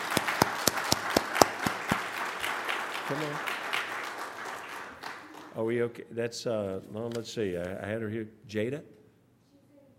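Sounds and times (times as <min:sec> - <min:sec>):
audience applause for young people: 0:00.0 - 0:05.6
speech: 0:03.1 - 0:03.5, 0:05.6 - 0:09.0.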